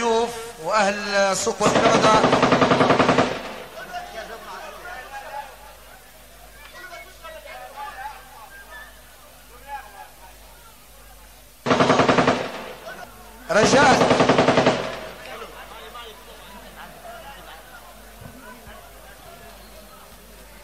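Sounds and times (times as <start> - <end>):
murmuring voices of arriving guests: 0.0 - 20.6
speech: 0.6 - 2.8
celebratory automatic gunfire in Souq al-Kanda: 1.6 - 3.9, 11.6 - 13.0, 13.6 - 15.4.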